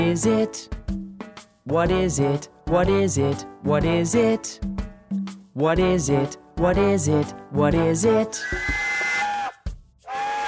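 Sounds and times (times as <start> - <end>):
speech: 0.1 - 0.9, 1.7 - 4.8, 5.6 - 8.8
train whistle: 8.4 - 10.4.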